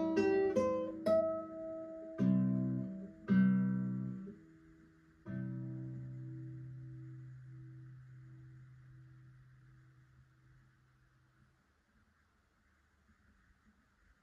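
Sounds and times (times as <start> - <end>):
easy romance guitar piece for beginners: 0.0 - 10.8.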